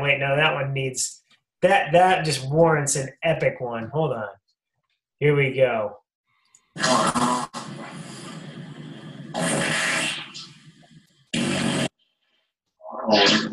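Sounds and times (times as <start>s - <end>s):
speech: 0.0s - 4.4s, 5.2s - 6.0s, 6.8s - 7.4s, 13.1s - 13.5s
nuclear fart sound effect from soundboard: 6.8s - 8.5s, 9.2s - 10.6s, 11.3s - 12.0s, 12.8s - 13.5s.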